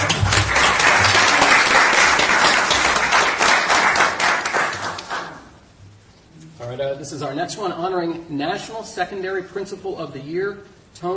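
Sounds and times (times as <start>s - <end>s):
applause: 0.0s - 5.5s
speech: 7.1s - 11.1s.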